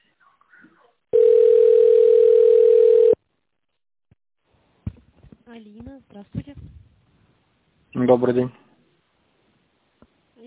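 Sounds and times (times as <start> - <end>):
telephone ringing tone: 1.2 - 3.2
speech: 5.5 - 6.9, 7.9 - 8.6.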